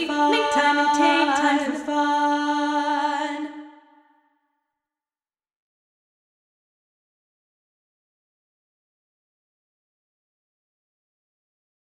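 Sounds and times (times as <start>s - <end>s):
a capella vocals: 0.0s - 4.0s.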